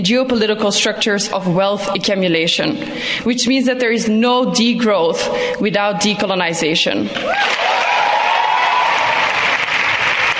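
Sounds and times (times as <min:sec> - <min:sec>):
speech: 0:00.0 - 0:08.0
audience cheering and applause: 0:07.2 - 0:10.3.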